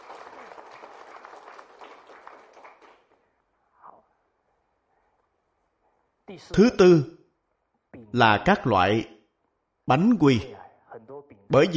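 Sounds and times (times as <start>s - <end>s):
audience applause: 0.0s - 3.2s
speech: 6.3s - 7.2s, 8.1s - 9.1s, 9.9s - 10.6s, 11.5s - 11.7s.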